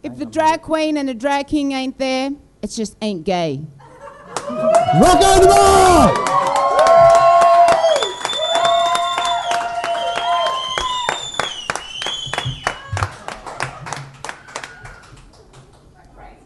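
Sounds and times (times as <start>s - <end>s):
speech: 0.0s - 3.8s, 4.5s - 6.4s
crowd cheering: 4.2s - 15.2s
applause: 4.4s - 15.8s
audience shrill whistles: 7.7s - 13.0s.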